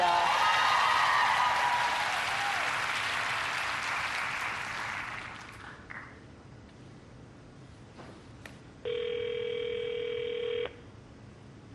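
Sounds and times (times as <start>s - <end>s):
crowd applause: 0.0s - 5.8s
telephone ring tone: 8.8s - 10.8s.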